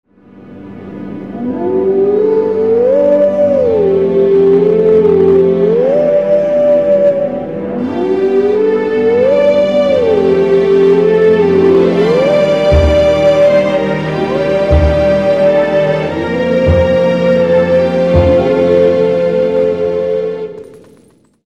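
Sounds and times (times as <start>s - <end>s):
wolf howling: 1.4s - 20.6s.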